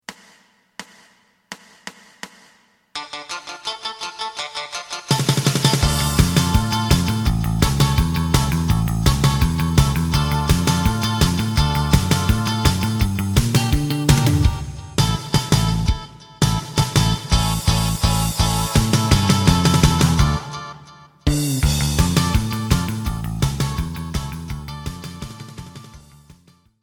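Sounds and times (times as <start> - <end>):
lead melody: 4.8 - 25.8.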